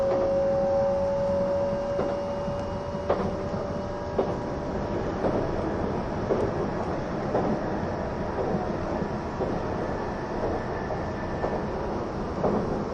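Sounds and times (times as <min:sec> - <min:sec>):
sustained whining tone: 0:00.0 - 0:04.4
E261 series Saphir Odoriko train wheels running on rail: 0:00.0 - 0:12.9.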